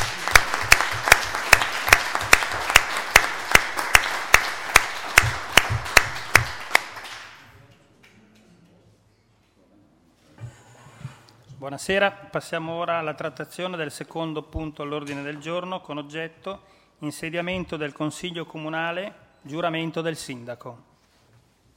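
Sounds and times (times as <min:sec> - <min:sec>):
council members applauding: 0:00.0 - 0:08.2
speech: 0:11.7 - 0:20.9.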